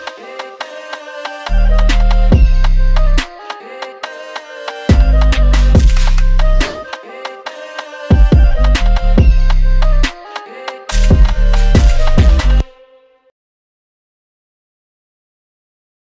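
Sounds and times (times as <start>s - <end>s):
UK drill beat made in FL Studio: 0.0s - 12.8s.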